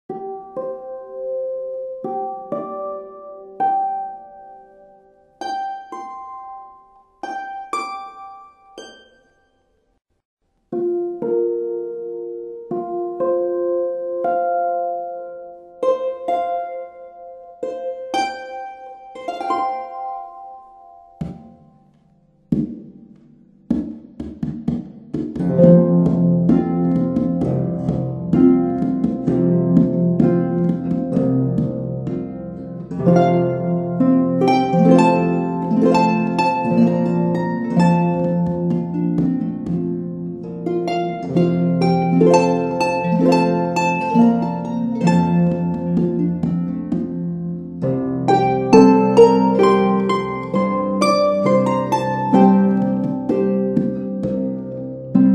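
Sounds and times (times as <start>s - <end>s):
harp playing Christmas carols: 0.1s - 9.6s, 10.7s - 21.9s, 22.5s - 55.3s.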